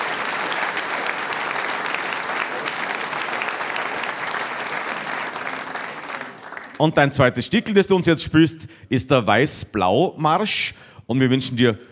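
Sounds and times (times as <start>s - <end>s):
audience applause: 0.0s - 7.1s
speech: 6.8s - 11.8s.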